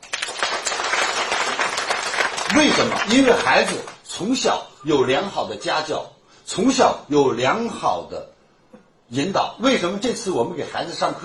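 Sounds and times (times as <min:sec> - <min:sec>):
audience applause: 0:00.0 - 0:04.0
speech: 0:02.5 - 0:08.3, 0:09.1 - 0:11.2.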